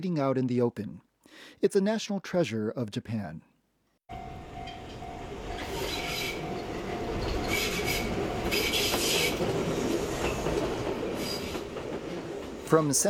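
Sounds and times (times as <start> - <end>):
speech: 0.0 - 3.5, 12.7 - 13.0
train running on rails: 4.1 - 13.0.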